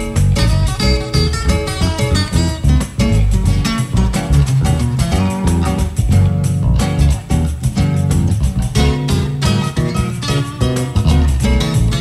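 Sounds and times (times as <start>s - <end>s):
acoustic percussion blues: 0.0s - 11.9s.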